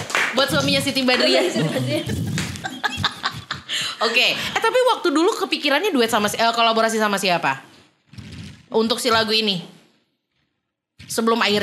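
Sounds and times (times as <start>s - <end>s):
clapping: 0.0s - 1.4s, 2.1s - 2.7s
speech: 0.4s - 2.4s, 4.0s - 7.7s, 8.7s - 9.8s, 11.1s - 11.6s
laughter: 0.7s - 4.6s.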